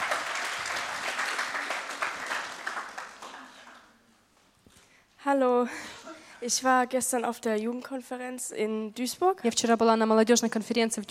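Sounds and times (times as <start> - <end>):
crowd applauding: 0.0 - 4.0
speech: 5.3 - 11.0.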